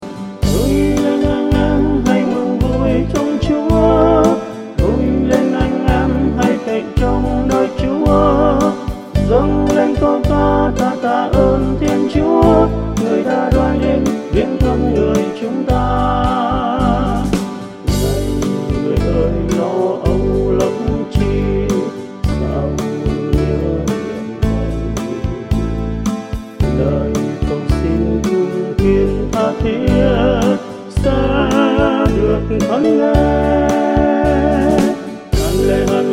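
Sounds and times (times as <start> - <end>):
bass line: 0.4 - 36.1.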